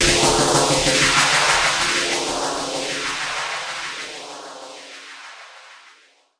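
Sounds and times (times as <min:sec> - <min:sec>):
downlifter effect: 0:00.0 - 0:04.8.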